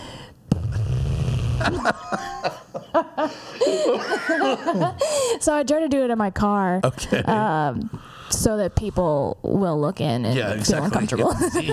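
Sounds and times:
person blowing raspberry with tongue between lips: 0.5 - 2.0
speech: 1.6 - 2.1, 3.3 - 11.7
laughter: 1.6 - 5.0.

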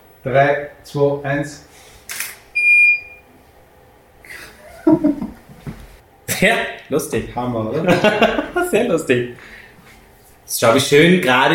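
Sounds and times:
speech: 0.2 - 1.9, 6.4 - 9.6, 10.5 - 11.5
camera shutter taking a photo: 2.1 - 2.4
high-pitched electronic camera beep: 2.6 - 3.2
laughter: 4.3 - 5.5, 7.8 - 8.9.

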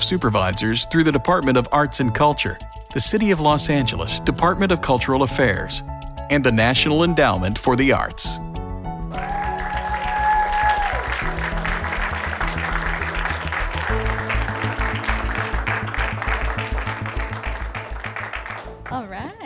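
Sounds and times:
music with deep bass notes: 0.0 - 19.4
speech: 0.1 - 8.5
audience applause: 9.1 - 19.0.

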